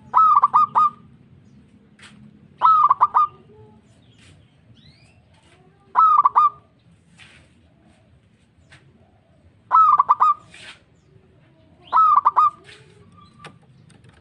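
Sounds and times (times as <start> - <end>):
local-type zebra dove cooing: 0.0 - 1.1, 2.6 - 3.8, 5.9 - 6.7, 9.0 - 10.5, 11.8 - 13.6.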